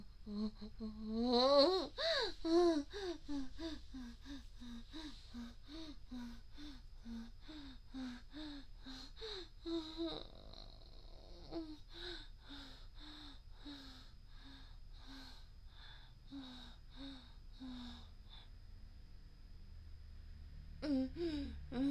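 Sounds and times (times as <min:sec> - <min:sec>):
woman moaning: 0:00.0 - 0:14.0, 0:20.8 - 0:21.8.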